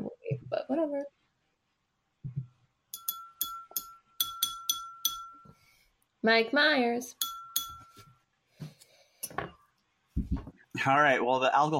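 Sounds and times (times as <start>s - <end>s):
speech: 0.7s - 1.2s, 6.2s - 7.3s, 10.8s - 11.7s
tapping a glass: 3.0s - 5.5s, 7.2s - 8.0s.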